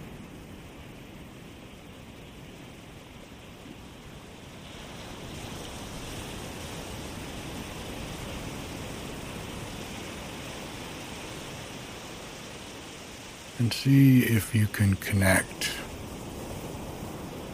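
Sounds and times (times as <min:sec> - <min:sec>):
ocean waves washing onto a beach: 0:00.0 - 0:17.5
speech: 0:13.6 - 0:15.8.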